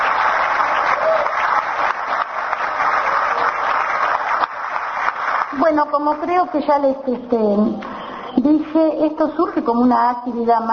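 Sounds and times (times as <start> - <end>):
audience applause: 0.0 - 6.0
speech: 5.7 - 10.7.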